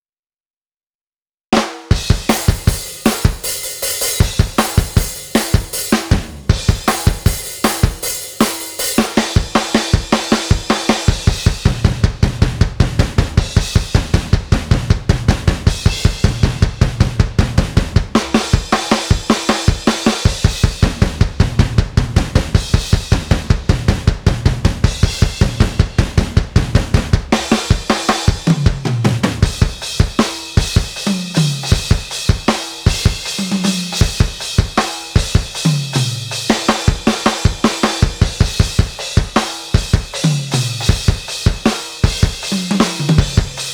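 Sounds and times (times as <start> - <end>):
studio MIDI drum kit with metal sound: 1.6 - 43.7.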